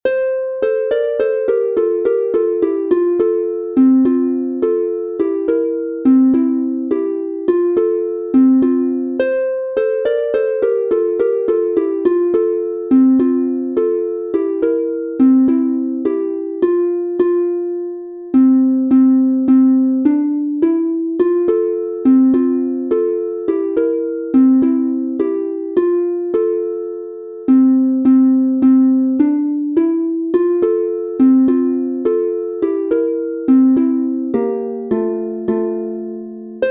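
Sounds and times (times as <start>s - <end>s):
harp piece in F major: 0.0s - 36.6s.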